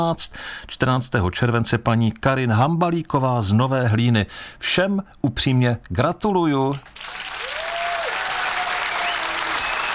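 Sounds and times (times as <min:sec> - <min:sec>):
speech: 0:00.0 - 0:07.1
audience applause for the winners: 0:06.8 - 0:09.9.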